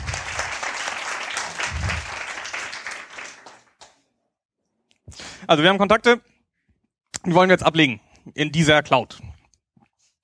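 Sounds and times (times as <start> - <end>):
audience applause: 0.0 - 3.9
speech: 5.5 - 6.3, 7.2 - 9.3.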